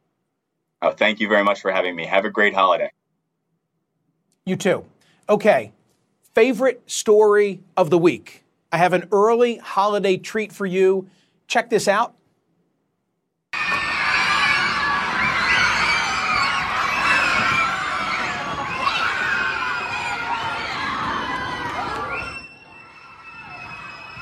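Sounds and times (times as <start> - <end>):
speech: 0.8 - 3.0, 4.5 - 5.8, 6.4 - 12.2
students cheering and screaming wildly: 13.6 - 24.2.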